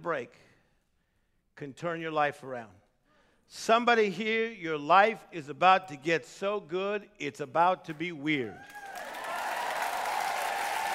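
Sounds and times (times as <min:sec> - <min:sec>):
speech: 0:00.0 - 0:00.5, 0:01.6 - 0:02.8, 0:03.5 - 0:08.8
audience clapping: 0:08.6 - 0:10.9.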